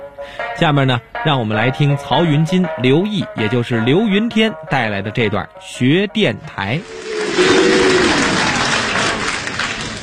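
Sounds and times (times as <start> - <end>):
speech: 0.2 - 8.0
audience applause: 6.9 - 10.0.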